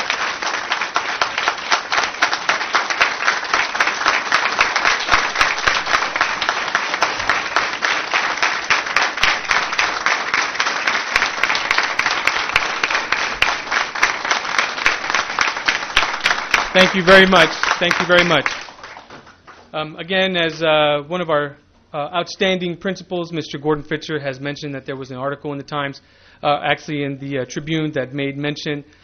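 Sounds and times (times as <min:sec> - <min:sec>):
crowd applauding: 0:00.0 - 0:19.7
speech: 0:16.8 - 0:18.6, 0:19.8 - 0:29.0.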